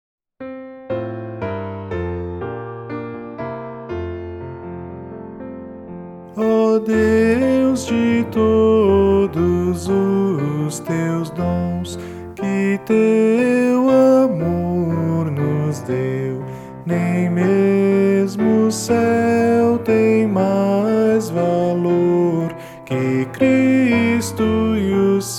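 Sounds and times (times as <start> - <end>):
piano: 0.4 - 25.3
person singing: 6.3 - 25.3.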